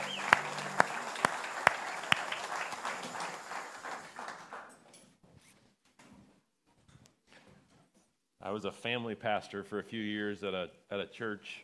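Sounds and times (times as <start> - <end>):
audience clapping: 0.0 - 4.8
speech: 8.5 - 11.6.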